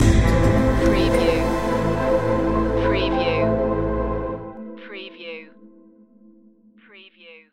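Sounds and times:
musical stinger: 0.0s - 4.7s.

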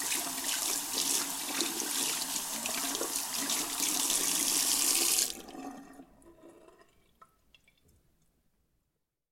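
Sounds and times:
washing hands: 0.0s - 5.4s.

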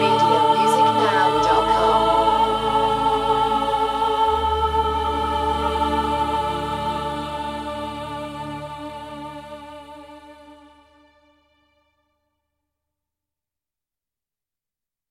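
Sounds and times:
chorus singing: 0.0s - 11.1s.

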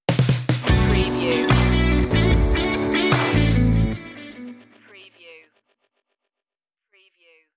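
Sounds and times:
musical stinger: 0.7s - 4.7s.

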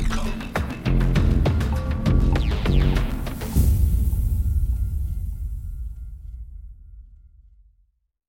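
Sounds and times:
bass drums: 0.0s - 6.2s.

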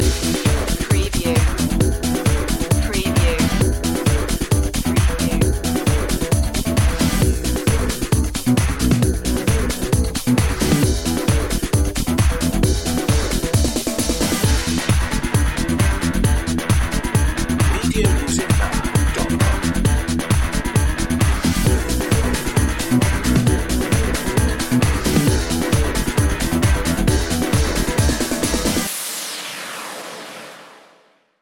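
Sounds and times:
scissor disco music: 0.0s - 29.8s.

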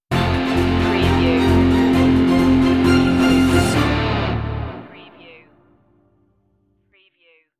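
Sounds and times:
musical stinger: 0.1s - 6.0s.

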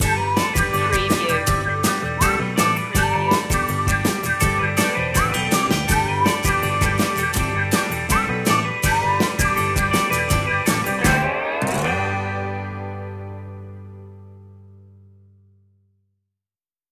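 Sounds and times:
upbeat music: 0.0s - 13.2s.

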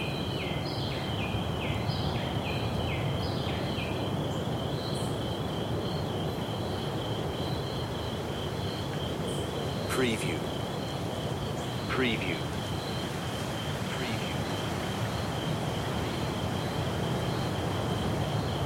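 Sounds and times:
rainforest ambience: 0.0s - 18.6s
ocean waves: 2.7s - 18.6s.

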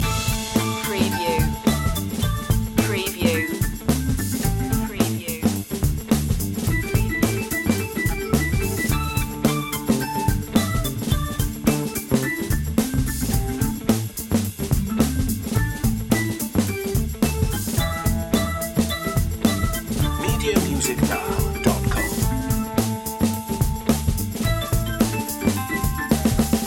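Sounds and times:
casino funk loop: 0.0s - 26.6s.

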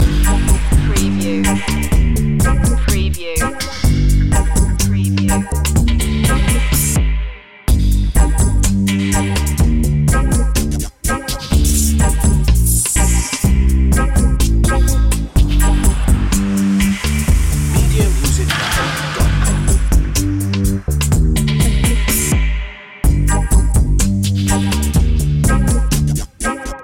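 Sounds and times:
dub music loop: 0.0s - 7.2s, 8.3s - 26.7s.

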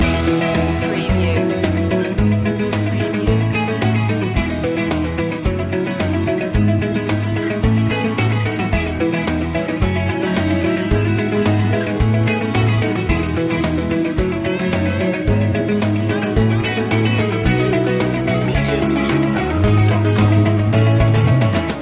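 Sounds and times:
motivational music loop: 0.0s - 21.7s.

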